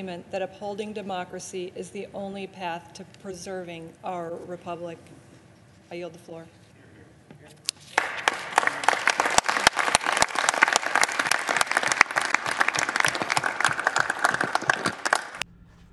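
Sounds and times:
speech: 0.0 - 5.2, 5.9 - 6.6
politicians applauding in a chamber: 7.7 - 15.9.

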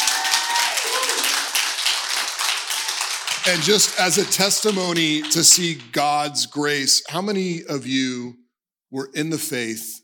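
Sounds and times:
audience clapping: 0.0 - 6.5
speech: 3.4 - 10.0.

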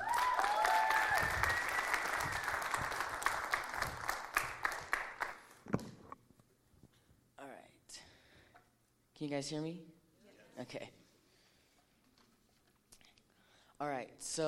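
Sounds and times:
audience applause: 0.0 - 5.5
speech: 9.2 - 10.0, 10.6 - 11.0, 14.2 - 14.4.

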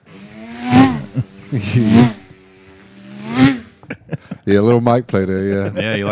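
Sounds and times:
voice imitating a NASCAR race car engine: 0.0 - 3.8
laughter: 1.0 - 2.3, 3.8 - 6.1
speech: 1.2 - 2.2, 4.5 - 6.1.

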